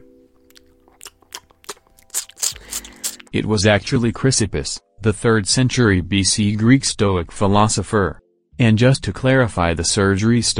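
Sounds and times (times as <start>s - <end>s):
donkey eating figs: 0.3s - 3.3s
speech: 3.3s - 10.5s.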